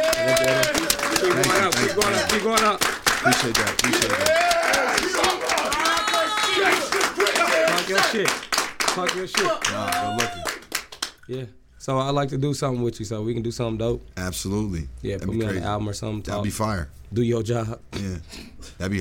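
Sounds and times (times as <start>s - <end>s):
audience round of applause: 0.0s - 11.2s
speech: 1.9s - 5.8s, 6.6s - 10.6s, 11.3s - 18.9s.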